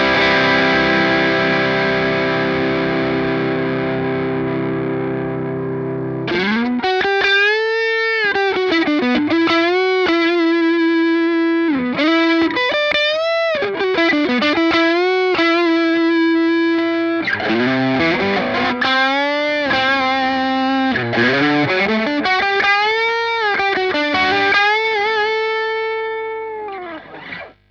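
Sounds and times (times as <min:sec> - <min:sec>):
Fender American Special Telecaster electric guitar: 0:00.0 - 0:27.7.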